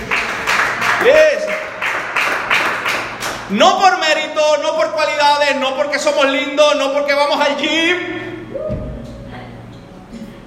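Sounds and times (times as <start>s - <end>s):
applause: 0.0s - 3.5s
speech: 3.5s - 8.2s.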